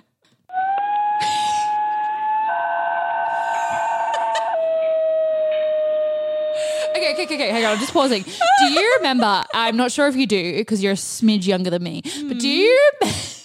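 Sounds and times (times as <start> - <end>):
dog singing in an operatic howl: 0.5 - 7.9
laughter: 3.1 - 4.7, 6.8 - 9.8
speech: 7.1 - 13.2.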